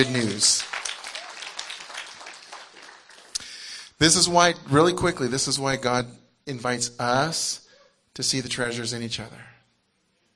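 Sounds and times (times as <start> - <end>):
speech: 0.0 - 0.8, 4.0 - 7.6, 8.2 - 9.5
audience clapping: 0.0 - 3.7.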